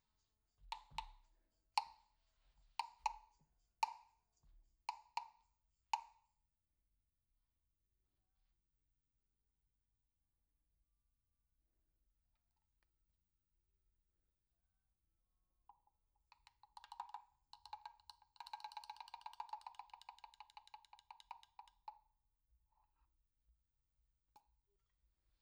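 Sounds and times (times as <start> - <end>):
dynamic percussion: 0.0 - 6.3, 15.8 - 22.1.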